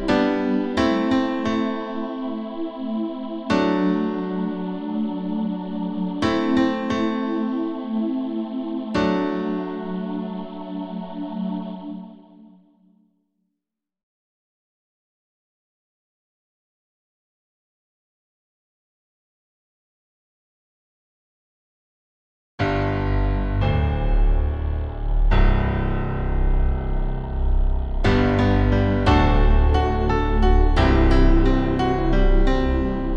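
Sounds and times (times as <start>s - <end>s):
piano: 0.0s - 12.6s, 22.6s - 33.1s.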